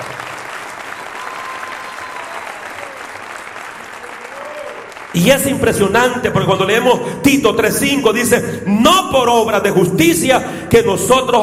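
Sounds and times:
audience applause: 0.0s - 5.5s
speech: 5.1s - 11.4s.

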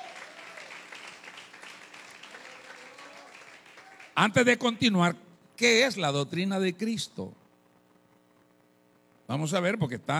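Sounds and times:
audience applause: 0.0s - 4.2s
speech: 4.2s - 7.4s, 9.3s - 10.1s.

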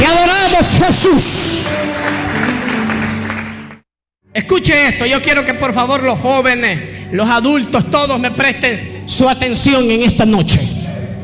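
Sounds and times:
speech: 0.8s - 2.4s, 4.4s - 11.2s
audience applause: 1.4s - 3.8s.

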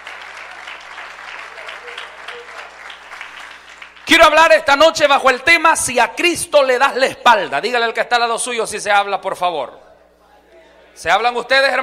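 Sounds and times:
audience applauding: 0.0s - 4.1s
speech: 4.2s - 9.8s, 11.0s - 11.8s.

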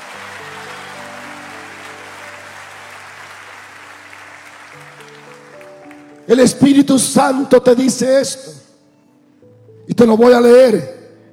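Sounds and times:
audience applause: 0.0s - 7.1s
speech: 6.3s - 8.6s, 10.0s - 11.0s.

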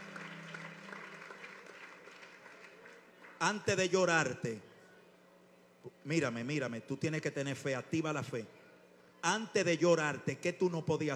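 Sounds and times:
audience applause: 0.0s - 3.6s
speech: 3.4s - 4.7s, 6.0s - 8.6s, 9.2s - 11.1s.

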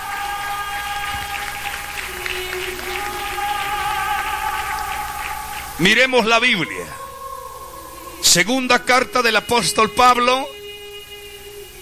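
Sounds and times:
audience clapping: 0.0s - 6.4s
speech: 5.8s - 7.0s, 8.4s - 10.6s.

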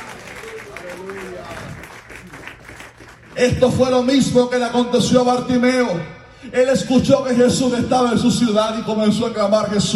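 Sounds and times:
audience clapping hands: 0.0s - 3.8s
speech: 3.4s - 9.9s.

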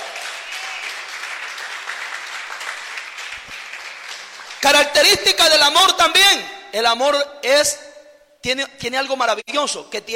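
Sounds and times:
crowd applause: 0.0s - 4.6s
speech: 4.6s - 7.8s, 8.4s - 10.1s.

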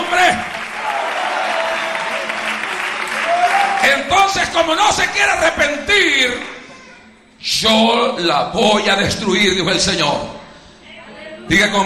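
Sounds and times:
audience applauding: 0.0s - 4.1s
speech: 3.9s - 6.6s, 7.4s - 10.4s, 11.5s - 11.8s.

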